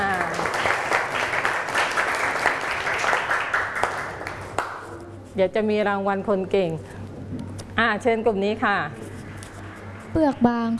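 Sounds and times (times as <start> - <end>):
classroom children clapping for classmates: 0.0 - 4.9
speech: 5.4 - 9.0, 10.1 - 10.7.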